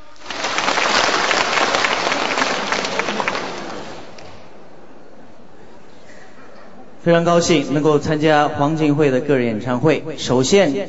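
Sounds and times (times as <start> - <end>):
audience applause: 0.0 - 4.4
speech: 7.0 - 10.8.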